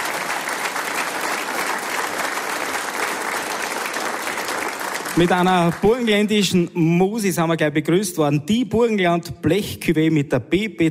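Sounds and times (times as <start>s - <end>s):
audience applause: 0.0s - 6.4s
speech: 5.2s - 10.9s.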